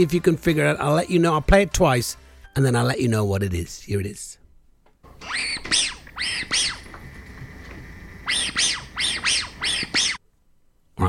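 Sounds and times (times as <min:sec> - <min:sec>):
speech: 0:00.0 - 0:04.4, 0:05.2 - 0:05.8
squeaky dog toy: 0:05.2 - 0:06.9, 0:08.3 - 0:10.2.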